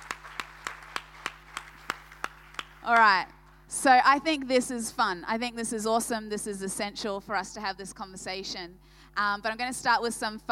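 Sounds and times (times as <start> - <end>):
round of applause hand clapping: 0.0 - 3.2
low constant electrical hum: 0.0 - 10.5
speech: 2.9 - 10.5.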